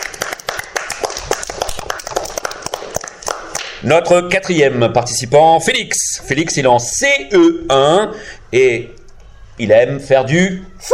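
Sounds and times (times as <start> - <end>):
audience applauding: 0.0 - 3.8
speech: 3.8 - 9.0, 9.6 - 10.9.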